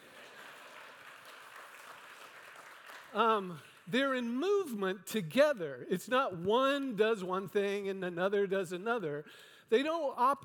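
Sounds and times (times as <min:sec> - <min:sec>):
audience clapping: 0:00.0 - 0:04.0
speech: 0:03.1 - 0:10.4.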